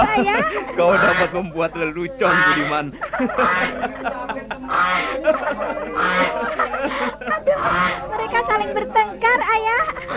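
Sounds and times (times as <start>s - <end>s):
people chattering and laughing: 0.0s - 10.1s
speech: 0.0s - 10.1s
goose honking while dragging four people: 0.8s - 3.8s, 4.7s - 5.3s, 5.9s - 8.3s.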